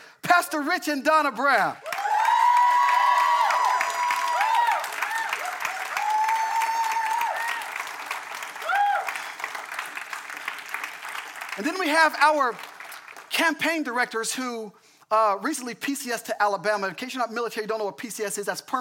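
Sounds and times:
speech: 0.3 - 1.9, 11.6 - 12.7, 13.4 - 18.7
audience applause and cheering: 1.8 - 13.3.

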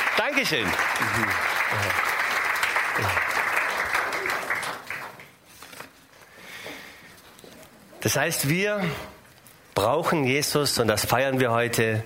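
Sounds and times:
audience applause: 0.0 - 5.4
speech: 0.2 - 2.2, 2.9 - 3.5, 8.0 - 9.1, 9.8 - 12.0.

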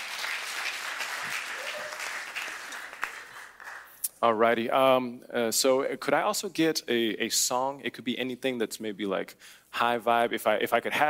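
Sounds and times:
audience round of applause: 0.0 - 4.0
speech: 4.2 - 11.0.

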